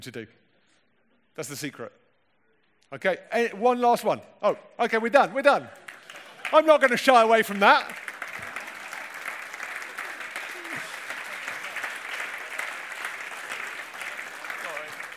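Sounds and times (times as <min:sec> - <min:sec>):
speech: 0:00.0 - 0:00.4, 0:01.4 - 0:02.0, 0:02.9 - 0:05.9, 0:06.5 - 0:08.0
audience applause: 0:05.8 - 0:15.1.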